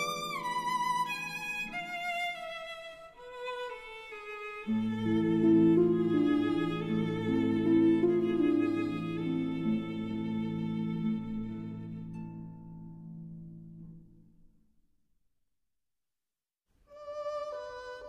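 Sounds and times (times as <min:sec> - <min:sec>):
berceuse for violin and harp: 0:00.0 - 0:13.0, 0:16.9 - 0:18.0.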